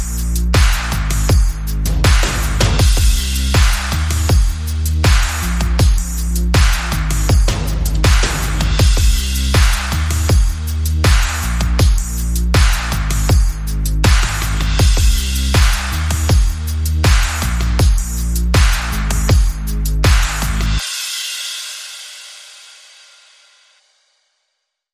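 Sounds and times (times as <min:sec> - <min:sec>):
bass: 0:00.0 - 0:21.0
percussion: 0:00.0 - 0:24.2.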